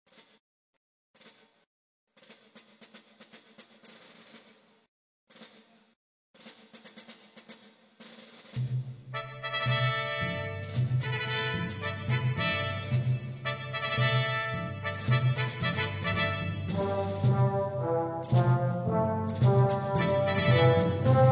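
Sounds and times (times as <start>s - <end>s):
brass choir playing: 9.2s - 21.3s.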